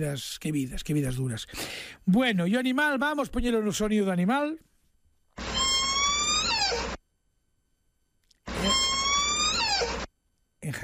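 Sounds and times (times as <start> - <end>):
speech: 0.0 - 4.7, 10.7 - 10.8
rusty door hinge creaking: 5.4 - 7.0, 8.5 - 10.1.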